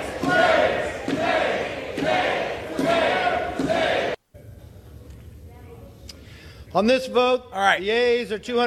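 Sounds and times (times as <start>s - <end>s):
legislators chanting shame on House floor: 0.0s - 4.2s
speech: 6.8s - 8.6s.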